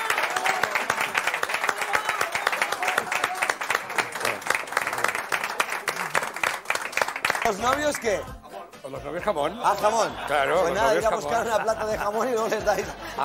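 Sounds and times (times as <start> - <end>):
sustained crowd applause: 0.0 - 8.0
speech: 7.5 - 13.2
laughter: 9.3 - 13.2.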